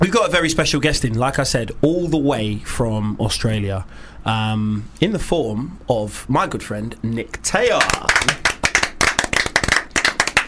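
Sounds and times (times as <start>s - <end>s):
speech: 0.0s - 8.4s
one person clapping hands: 7.7s - 10.4s.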